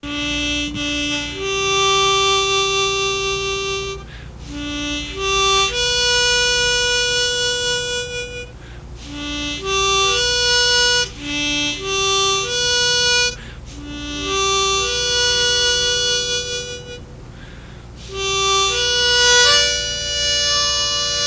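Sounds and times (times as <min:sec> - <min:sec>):
funeral harmonica: 0:00.0 - 0:21.2.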